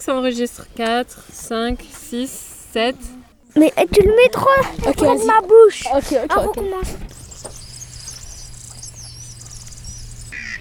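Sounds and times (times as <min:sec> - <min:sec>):
speech: 0:00.0 - 0:07.2
steady low hum: 0:00.3 - 0:10.4
chorus of chirping insects or birds: 0:04.0 - 0:10.5
kingfisher high-pitched whistles: 0:07.1 - 0:10.5.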